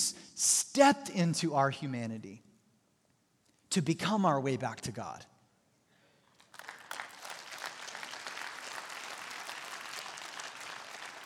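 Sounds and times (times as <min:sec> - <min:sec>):
speech: 0:00.8 - 0:02.5, 0:03.7 - 0:05.3
audience clapping: 0:06.2 - 0:11.2.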